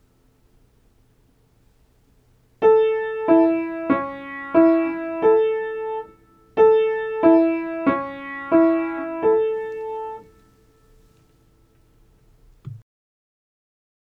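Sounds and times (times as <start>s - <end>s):
triad chords in inversion for aural training: 2.6s - 10.5s.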